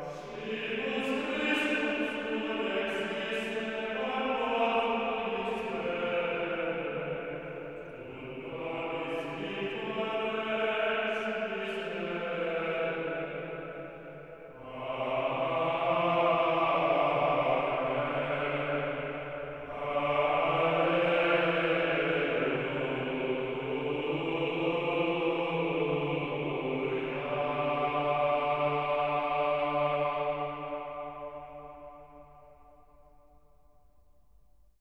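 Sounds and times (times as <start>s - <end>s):
sacred choral chant at a Venetian Easter mass: 0.0s - 32.5s.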